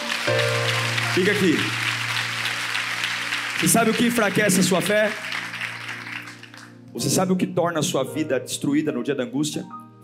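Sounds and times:
audience applauding: 0.0s - 7.0s
speech: 1.2s - 1.9s, 3.6s - 5.2s, 6.9s - 10.0s.

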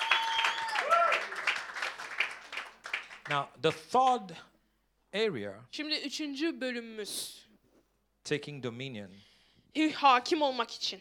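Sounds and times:
voice over applause: 0.0s - 3.4s
audience clapping: 0.0s - 4.2s
speech: 3.3s - 4.5s, 5.1s - 7.4s, 8.2s - 10.9s.

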